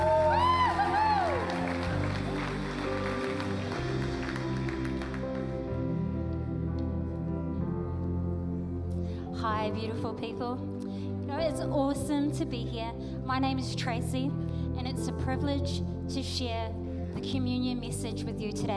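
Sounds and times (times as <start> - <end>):
church congregation applause and cheers welcoming a speaker: 0.0 - 5.9
sustained music: 0.0 - 18.7
speech: 9.7 - 14.4, 15.0 - 18.7.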